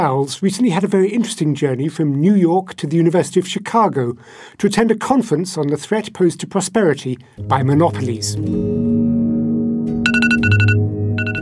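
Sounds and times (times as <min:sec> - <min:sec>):
speech: 0:00.0 - 0:08.9
smartphone alarm beeping: 0:10.1 - 0:11.4.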